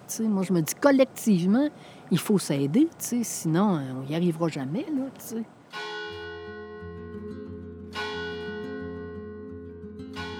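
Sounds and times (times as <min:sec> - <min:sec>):
speech: 0:00.1 - 0:05.9
church bells ringing: 0:05.8 - 0:06.8, 0:08.0 - 0:09.3, 0:10.2 - 0:10.3.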